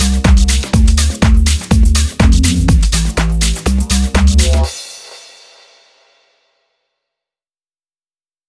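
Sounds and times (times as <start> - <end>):
bass and trap beat: 0.0 - 4.7.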